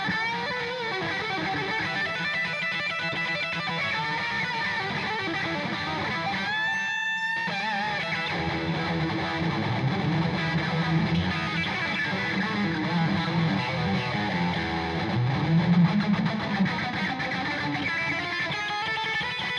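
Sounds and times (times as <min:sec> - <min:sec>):
electric guitar on bridge pickup with high tone: 0:00.0 - 0:19.5.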